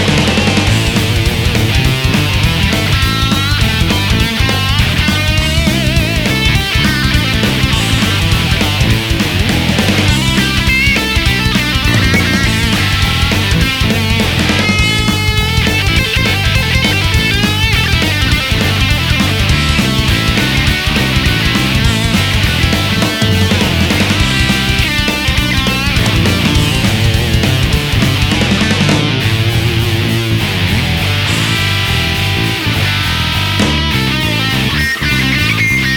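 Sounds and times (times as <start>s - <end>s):
lead melody: 0.2s - 35.9s.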